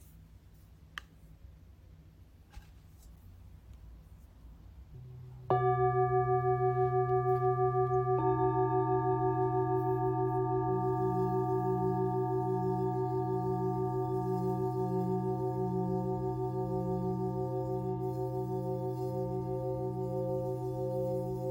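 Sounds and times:
low hum: 0:04.9 - 0:21.4
low tone pulsing with a regular wobble: 0:05.0 - 0:21.4
singing bowl struck and ringing: 0:05.0 - 0:21.4.

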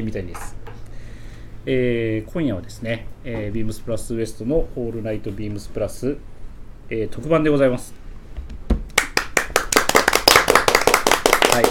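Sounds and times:
speech: 0:00.0 - 0:00.6, 0:01.6 - 0:06.3, 0:06.9 - 0:08.0
clapping and applause: 0:08.9 - 0:11.6.

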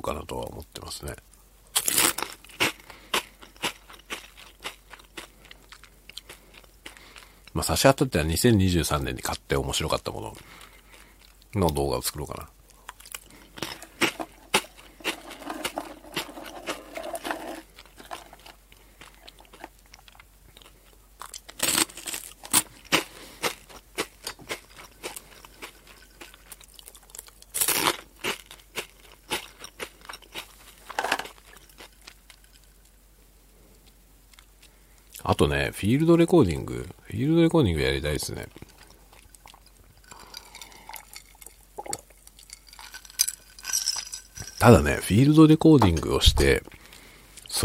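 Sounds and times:
speech: 0:00.0 - 0:01.3, 0:07.6 - 0:10.6, 0:11.5 - 0:12.6, 0:35.7 - 0:38.6, 0:44.6 - 0:46.8
person chewing crunchy potato snack sticks: 0:01.7 - 0:07.6, 0:09.9 - 0:33.0, 0:37.8 - 0:45.0.

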